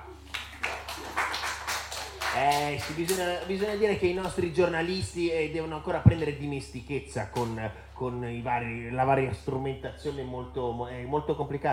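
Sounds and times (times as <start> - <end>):
applause: 0.2 - 4.0
speech: 2.4 - 11.7.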